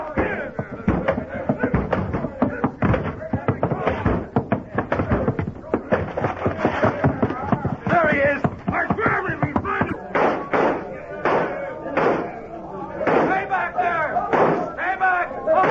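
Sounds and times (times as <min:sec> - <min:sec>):
voices shouting: 0:00.0 - 0:15.6
door being battered: 0:00.2 - 0:12.3, 0:14.3 - 0:14.7.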